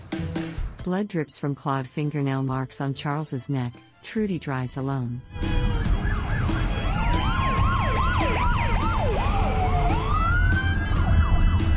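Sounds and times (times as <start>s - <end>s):
speech: 0.8s - 5.6s
police cruiser sirens passing on a road: 5.3s - 11.7s.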